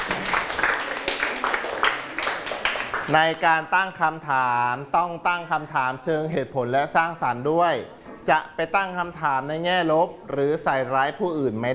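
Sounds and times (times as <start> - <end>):
classroom group clapping: 0.0 - 3.5
speech: 3.1 - 11.7.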